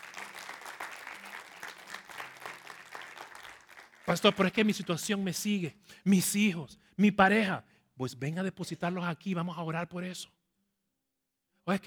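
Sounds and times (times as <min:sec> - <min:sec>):
audience applause: 0:00.0 - 0:04.9
speech: 0:04.1 - 0:10.4, 0:11.7 - 0:11.8.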